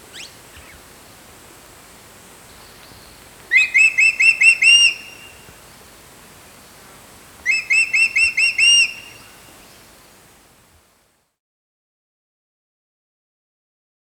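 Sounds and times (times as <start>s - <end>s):
faint hiss: 0.0s - 11.4s
crested hawk-eagle giving piercing whistles: 0.1s - 0.8s, 3.5s - 5.4s, 7.4s - 9.4s.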